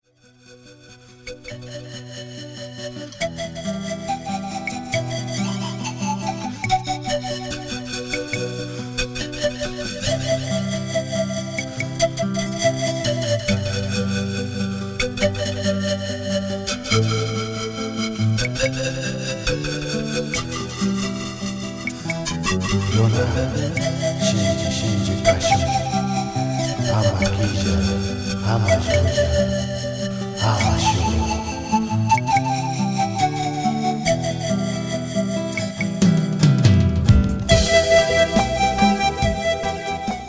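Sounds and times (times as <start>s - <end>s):
mystic flutes: 0.8s - 40.2s.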